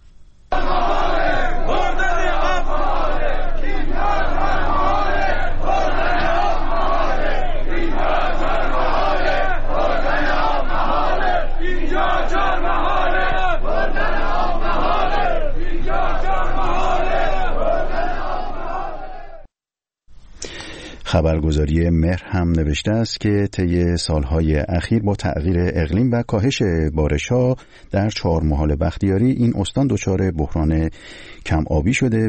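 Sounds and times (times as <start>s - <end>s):
crowd of protesters chanting in unison: 0.5s - 19.5s
speech: 21.2s - 32.2s.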